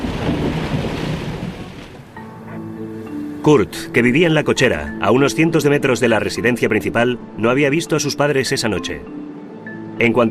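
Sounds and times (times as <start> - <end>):
thunder: 0.0 - 2.2
speech: 3.4 - 9.2, 10.0 - 10.2.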